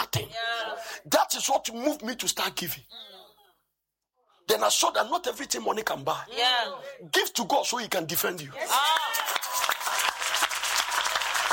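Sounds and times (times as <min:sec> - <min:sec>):
speech: 0:01.2 - 0:03.2, 0:04.5 - 0:09.3
crowd applauding: 0:08.6 - 0:11.5.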